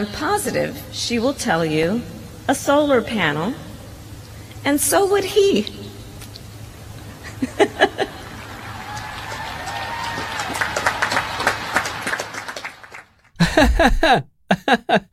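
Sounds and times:
speech: 0:00.0 - 0:03.7, 0:04.6 - 0:05.8, 0:07.5 - 0:08.0, 0:13.8 - 0:15.1
laughter: 0:07.2 - 0:09.0, 0:13.4 - 0:15.1
polite applause from an audience: 0:08.0 - 0:13.7.

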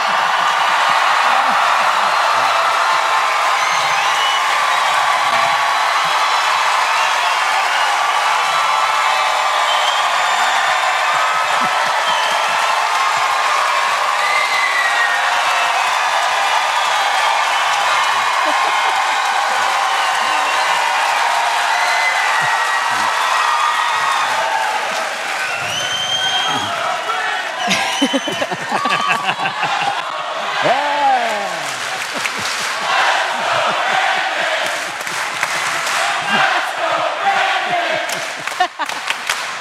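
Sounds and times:
laughter: 0:00.0 - 0:03.0, 0:11.3 - 0:13.8, 0:17.2 - 0:21.6, 0:22.2 - 0:25.0, 0:26.3 - 0:39.6
audience applause: 0:00.0 - 0:39.6.

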